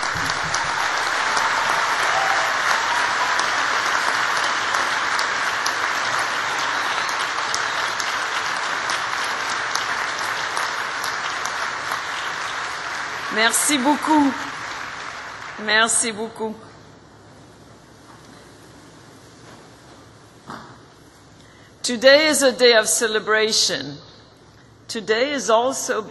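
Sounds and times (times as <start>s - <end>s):
big round of audience applause: 0.0s - 15.7s
speech: 13.4s - 14.5s, 15.6s - 16.7s, 21.9s - 24.1s, 24.9s - 26.0s.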